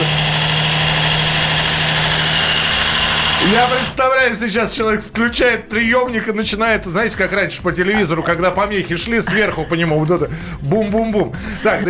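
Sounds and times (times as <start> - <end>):
blender mixing ice cream with banana: 0.0 - 4.0
speech: 3.4 - 11.8
laughter: 7.8 - 10.4.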